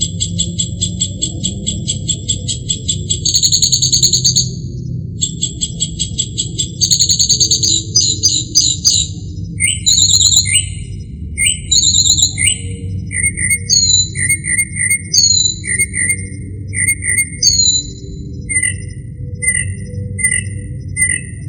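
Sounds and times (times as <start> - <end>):
northern mockingbird singing: 0.0 - 4.6, 5.2 - 21.4
low background rumble: 0.0 - 21.4.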